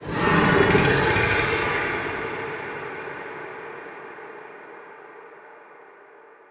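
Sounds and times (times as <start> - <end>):
unknown creatures: 0.0 - 2.3.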